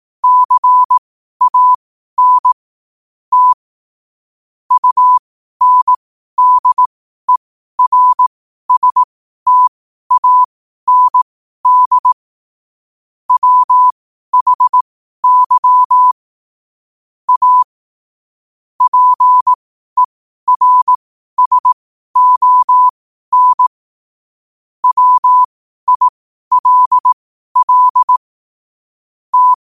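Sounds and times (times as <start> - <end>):
morse code at 5 wpm: 0.2 - 2.6, 3.3 - 3.6, 4.7 - 12.2, 13.3 - 16.2, 17.3 - 17.7, 18.8 - 23.8, 24.8 - 28.2, 29.3 - 29.6.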